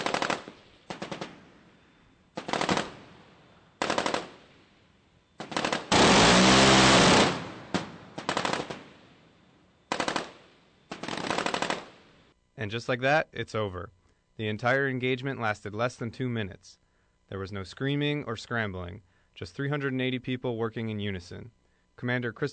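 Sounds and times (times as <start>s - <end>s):
radar-guided rotating-barrel cannon firing: 0.0s - 1.6s, 2.3s - 4.7s, 5.4s - 9.3s, 9.9s - 12.2s
speech: 12.6s - 22.5s.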